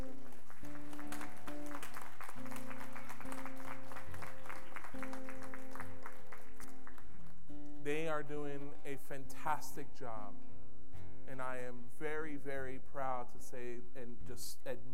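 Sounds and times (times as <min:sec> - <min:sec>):
audience applause: 0:00.0 - 0:07.4
speech: 0:08.2 - 0:10.5, 0:11.3 - 0:14.9.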